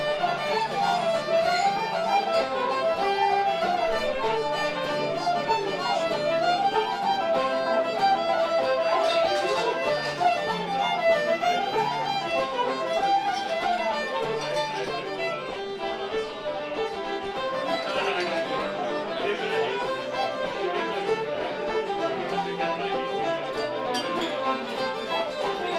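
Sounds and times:
Irish pub crowd: 0:00.0 - 0:25.7.

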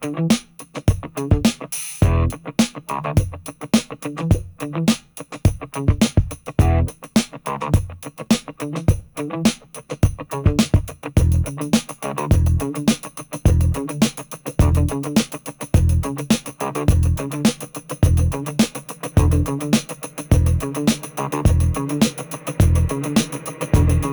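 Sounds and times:
festive funky groove music: 0:00.0 - 0:24.1.

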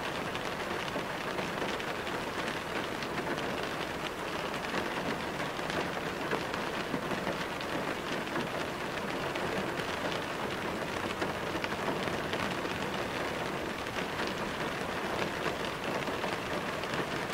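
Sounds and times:
rain heard from inside a car: 0:00.0 - 0:17.3.

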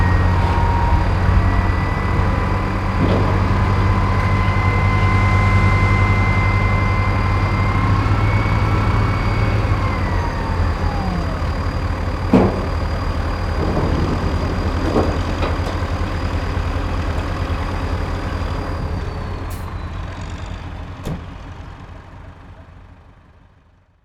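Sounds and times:
truck crane moving and lifting: 0:00.0 - 0:24.0.

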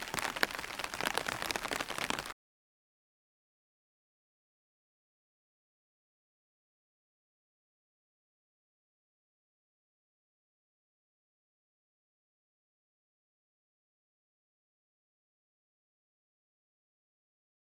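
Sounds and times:
light rain on umbrella heard from underneath: 0:00.0 - 0:02.4.

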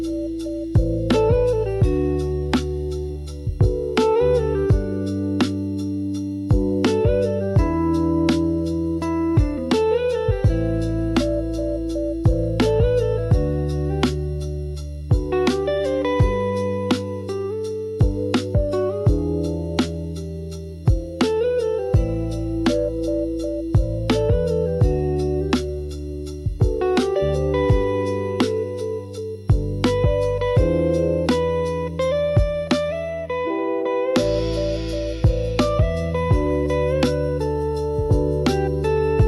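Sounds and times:
chill relaxing lo-fi music: 0:00.0 - 0:39.2.

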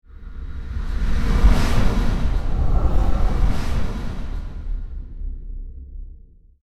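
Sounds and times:
squadron of spacecraft jets flying by: 0:00.2 - 0:05.5.

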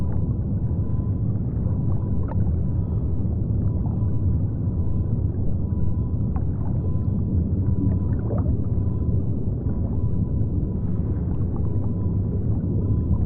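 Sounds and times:
submarine traveling underwater: 0:00.0 - 0:13.2.

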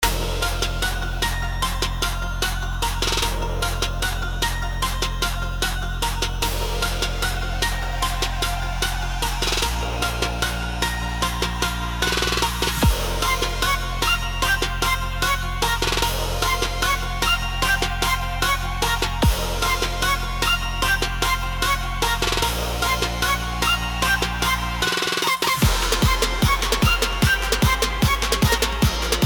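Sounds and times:
epic hybrid powerful music: 0:00.0 - 0:29.2.

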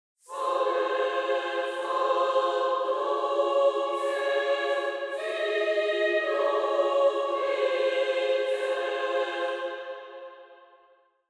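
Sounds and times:
angelic choir of celestial voices: 0:00.2 - 0:11.0.

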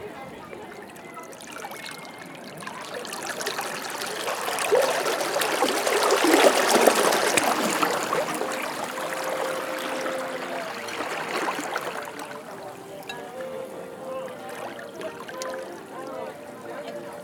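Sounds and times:
gentle ocean waves: 0:00.0 - 0:17.1
people chattering: 0:00.0 - 0:17.1.

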